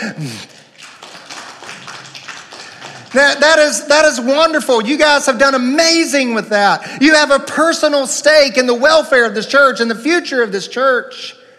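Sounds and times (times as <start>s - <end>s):
speech: 0.0s - 0.6s, 3.1s - 11.4s
audience clapping hands: 0.2s - 4.2s.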